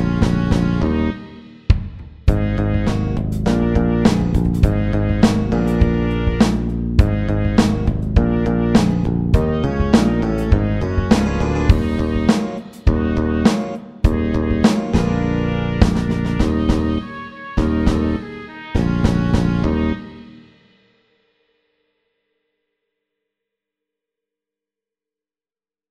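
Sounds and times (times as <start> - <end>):
funky music at 102 BPM: 0.0 - 20.6.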